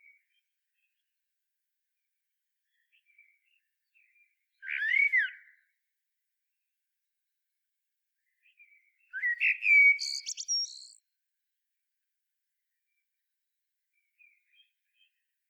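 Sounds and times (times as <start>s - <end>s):
Eurasian blackbird song: 2.6s - 5.8s, 8.2s - 11.0s, 13.9s - 15.4s.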